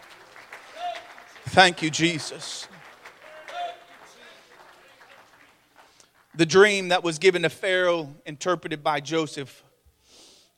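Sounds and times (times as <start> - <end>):
audience hand clapping: 0.0 - 6.9
speech: 1.5 - 2.7, 6.4 - 9.7.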